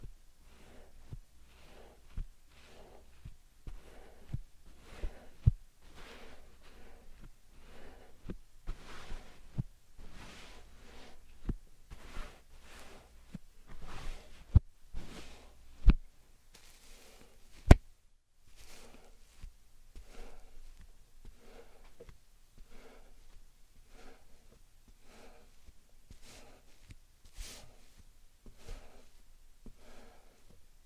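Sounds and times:
slime and sand squished: 0.4 - 30.5.

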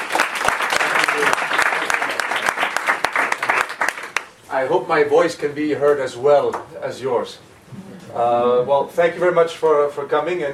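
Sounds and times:
audience applause: 0.0 - 4.3
speech: 4.6 - 7.5, 8.1 - 10.5.

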